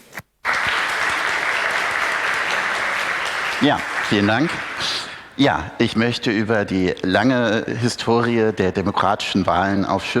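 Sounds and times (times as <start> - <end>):
audience applause: 0.4 - 5.4
speech: 3.6 - 10.1.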